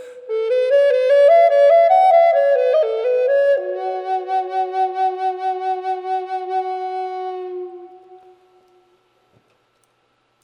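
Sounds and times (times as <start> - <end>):
wet flute note in F sharp: 0.0 - 9.1.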